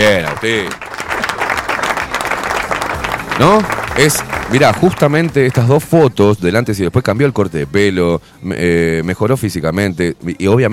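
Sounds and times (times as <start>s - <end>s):
speech: 0.0s - 0.8s, 3.4s - 10.7s
applause: 0.0s - 6.1s.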